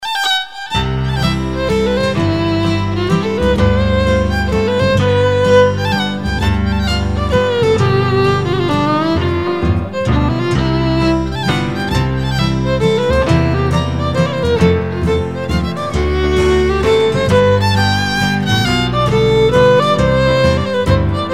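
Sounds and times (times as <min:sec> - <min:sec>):
waltz music: 0:00.1 - 0:21.3.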